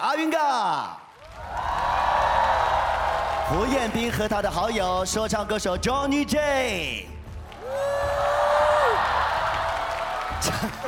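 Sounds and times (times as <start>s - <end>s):
speech: 0.0s - 1.0s, 3.5s - 7.1s, 10.4s - 10.8s
audience applause and cheering at a singing competition round: 0.0s - 5.6s, 7.1s - 10.8s.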